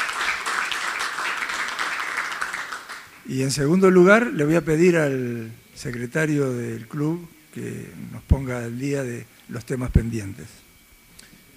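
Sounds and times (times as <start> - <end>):
audience applause: 0.0 - 3.2
speech: 3.3 - 10.6.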